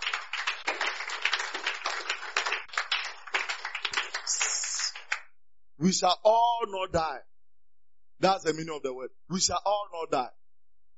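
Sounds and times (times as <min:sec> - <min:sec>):
audience clapping: 0:00.0 - 0:05.3
speech: 0:05.8 - 0:07.3, 0:08.2 - 0:10.4.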